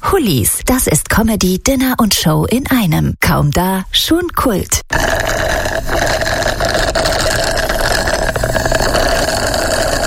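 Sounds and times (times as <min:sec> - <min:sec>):
speech: 0:00.1 - 0:05.6
loud slurping of a cocktail: 0:04.9 - 0:10.0.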